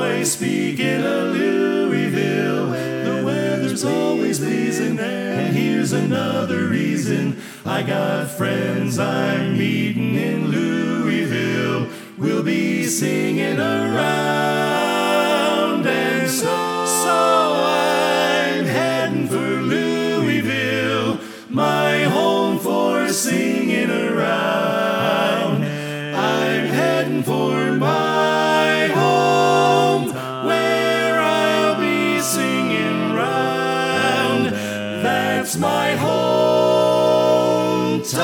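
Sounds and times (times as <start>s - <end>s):
baritone on left channel: 0.0s - 38.2s.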